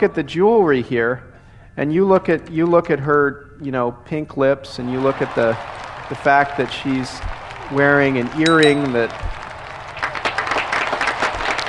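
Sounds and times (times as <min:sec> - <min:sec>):
speech: 0:00.0 - 0:09.4
crowd applauding: 0:04.8 - 0:11.6.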